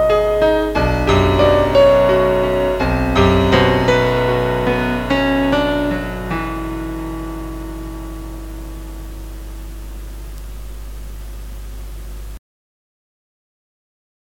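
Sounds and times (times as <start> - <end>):
short piano piece: 0.0 - 11.2.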